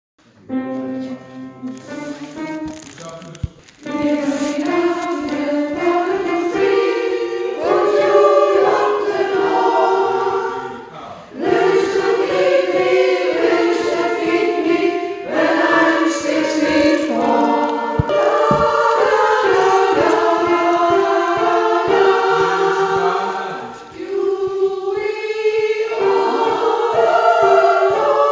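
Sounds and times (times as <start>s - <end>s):
soprano and alto voices: 0.4s - 28.2s.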